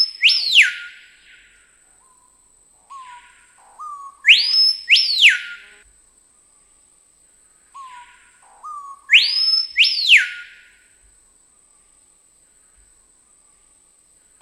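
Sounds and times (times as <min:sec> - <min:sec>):
screaming piha song of loud piercing whistles: 0:00.0 - 0:05.8, 0:07.8 - 0:10.9.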